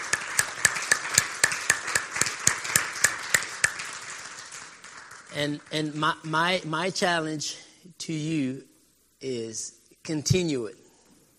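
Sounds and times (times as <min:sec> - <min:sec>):
dense wash of scattered applause: 0:00.0 - 0:06.0
audience clapping in steady even rhythm: 0:00.0 - 0:06.4
speech: 0:05.4 - 0:10.8.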